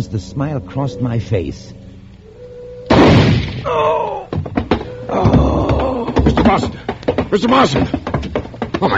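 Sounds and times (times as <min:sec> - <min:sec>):
speech: 0:00.0 - 0:01.8, 0:03.6 - 0:04.3, 0:06.2 - 0:08.1, 0:08.8 - 0:08.9
shotgun blast: 0:02.9 - 0:03.7
person crying out: 0:03.6 - 0:06.3
sharp knocking thuds: 0:04.3 - 0:08.9.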